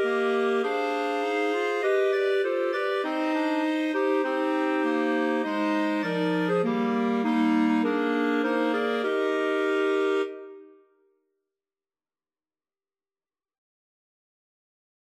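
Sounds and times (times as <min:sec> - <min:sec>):
clarinet quartet playing a national anthem: 0:00.0 - 0:10.7.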